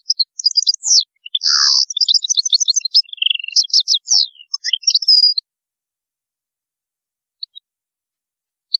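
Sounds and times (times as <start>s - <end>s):
European goldfinch twittering song: 0.0s - 5.4s.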